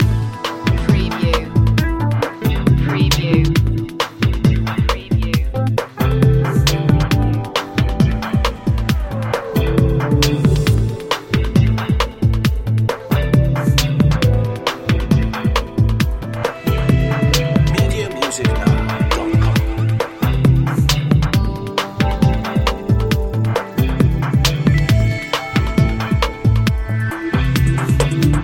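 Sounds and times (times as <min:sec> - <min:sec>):
upbeat music loop: 0:00.0 - 0:28.4.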